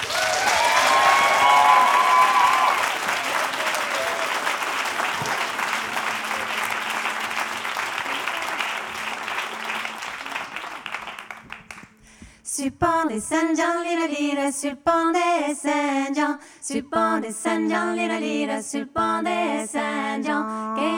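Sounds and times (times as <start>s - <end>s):
audience applause welcoming a folk band onto the stage: 0.0s - 12.0s
speech: 13.2s - 20.9s.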